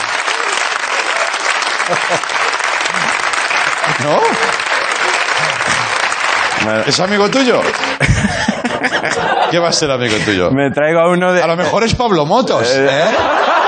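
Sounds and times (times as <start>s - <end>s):
applause from a large audience: 0.0s - 9.6s
laughter: 0.2s - 13.6s
speech: 2.1s - 2.4s, 4.0s - 4.7s, 6.6s - 13.4s.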